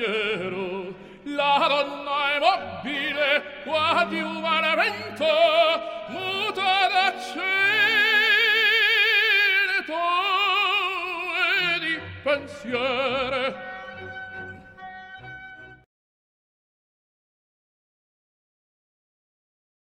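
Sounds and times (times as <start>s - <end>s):
tenor singing: 0.0s - 15.8s.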